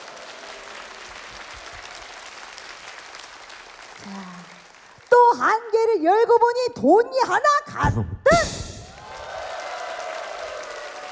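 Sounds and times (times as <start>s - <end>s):
audience applause: 0.0s - 5.2s, 8.8s - 11.1s
speech: 4.0s - 4.6s, 5.3s - 8.6s.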